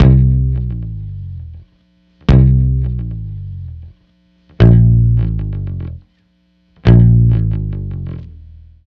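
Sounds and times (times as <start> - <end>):
multi guitar bossa with bass: 0.0 - 1.7, 2.3 - 4.0, 4.6 - 6.0, 6.8 - 8.7.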